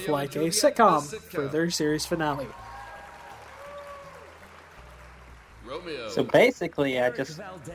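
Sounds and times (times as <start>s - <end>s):
speech: 0.0s - 2.7s, 5.8s - 7.7s
cheering: 2.2s - 5.8s
curtain call clapping: 2.5s - 5.7s.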